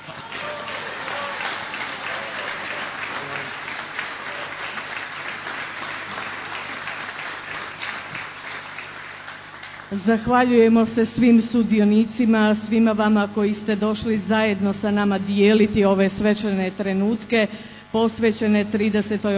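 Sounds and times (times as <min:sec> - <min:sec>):
crowd applauding at an anniversary ceremony: 0:00.0 - 0:09.9
speech: 0:09.9 - 0:19.3.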